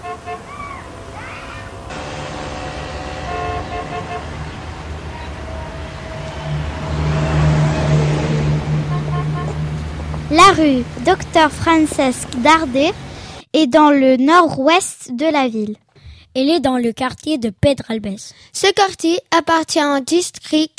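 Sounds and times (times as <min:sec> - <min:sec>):
car setting off and driving through the streets of Pedralbes: 0:00.0 - 0:13.4
speech: 0:10.4 - 0:15.8, 0:16.4 - 0:20.7.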